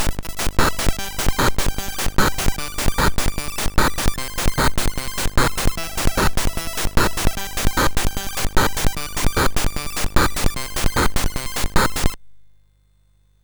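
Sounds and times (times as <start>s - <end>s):
MOS6581 chiptune tension remix: 0.1s - 12.2s.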